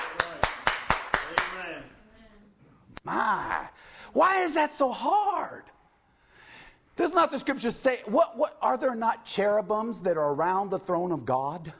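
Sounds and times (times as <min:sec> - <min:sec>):
audience clapping in unison: 0:00.0 - 0:01.8
speech: 0:03.1 - 0:05.8, 0:07.0 - 0:11.7.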